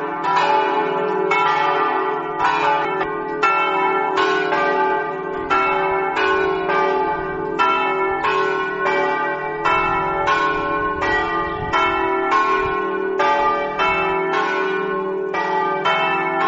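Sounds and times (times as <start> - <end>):
bells ringing: 0.0 - 16.4.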